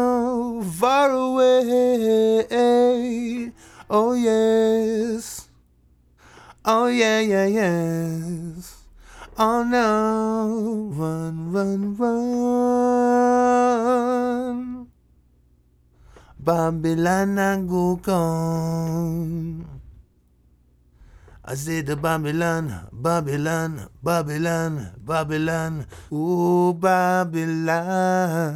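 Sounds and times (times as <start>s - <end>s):
lead vocal singing: 0.0s - 5.6s, 6.4s - 14.9s, 16.0s - 20.0s, 21.1s - 28.5s.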